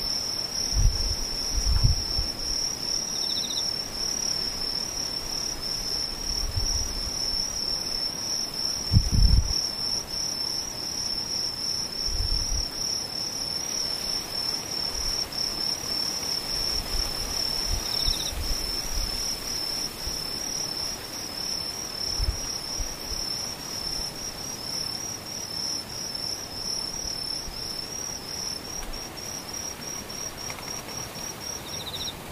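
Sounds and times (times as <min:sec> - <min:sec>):
crickets chirring outdoors: 0:00.0 - 0:32.3
high insect whine: 0:00.0 - 0:32.3.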